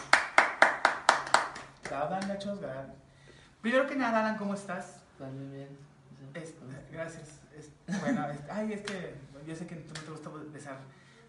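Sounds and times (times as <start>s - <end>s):
applause: 0.0s - 2.3s
speech: 2.0s - 11.0s.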